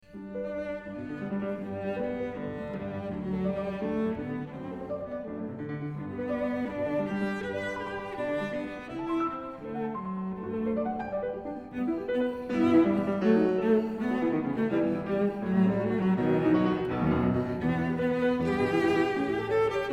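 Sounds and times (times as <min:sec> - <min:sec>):
cello and piano variations: 0:00.0 - 0:19.9.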